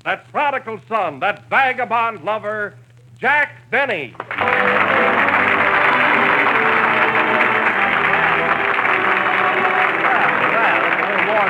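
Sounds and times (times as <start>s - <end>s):
speech: 0.0s - 5.7s
studio audience applauding a returning host: 4.2s - 11.4s.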